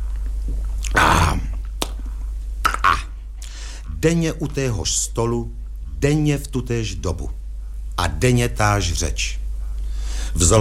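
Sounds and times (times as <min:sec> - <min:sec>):
loud lip smack after a drink: 0:00.1 - 0:03.6
speech: 0:04.0 - 0:07.4, 0:08.0 - 0:09.4, 0:10.3 - 0:10.5.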